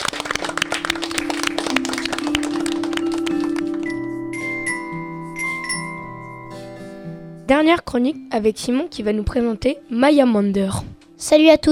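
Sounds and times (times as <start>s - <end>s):
applause, hands clapping: 0.0s - 4.7s
speech: 7.5s - 11.7s.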